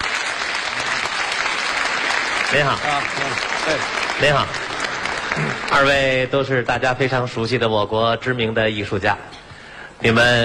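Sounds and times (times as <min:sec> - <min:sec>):
studio audience applause on a variety show stage in Beijing: 0:00.0 - 0:06.3
speech: 0:02.5 - 0:04.7, 0:05.3 - 0:09.3, 0:10.0 - 0:10.4.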